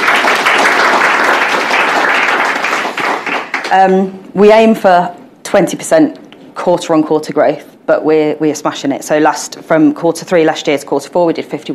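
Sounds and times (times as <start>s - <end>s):
applause: 0.0s - 3.8s
speech: 3.7s - 11.7s.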